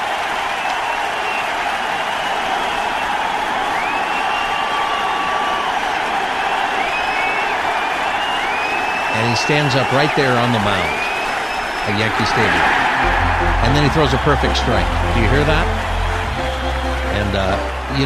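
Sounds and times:
stadium crowd cheering: 0.0s - 18.0s
speech: 9.4s - 11.1s, 11.9s - 15.9s, 17.2s - 18.0s
laughter: 11.9s - 18.0s.

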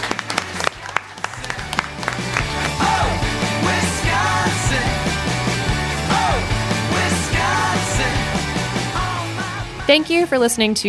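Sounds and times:
audience applause: 0.0s - 4.6s
music with a stepping bass line and a wavering melody: 0.0s - 10.3s
speech: 9.9s - 10.8s.

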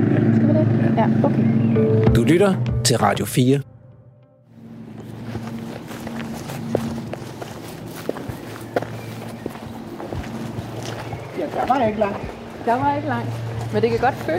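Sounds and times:
speech: 1.0s - 3.7s, 11.6s - 14.3s
footsteps walking through a forest: 4.6s - 14.3s.

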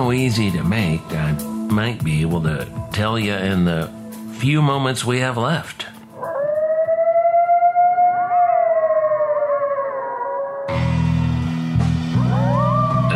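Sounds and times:
speech: 0.0s - 6.0s
coyotes howling: 6.2s - 11.2s, 12.2s - 13.1s.

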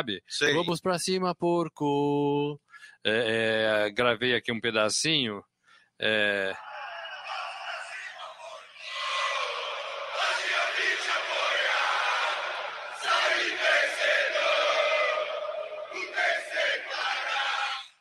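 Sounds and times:
speech: 0.0s - 6.7s
football fans chanting in a stadium: 6.6s - 17.9s.

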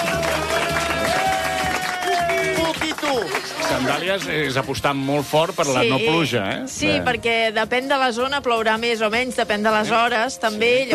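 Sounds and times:
studio audience applause and cheering: 0.0s - 5.1s
speech: 3.1s - 10.9s.

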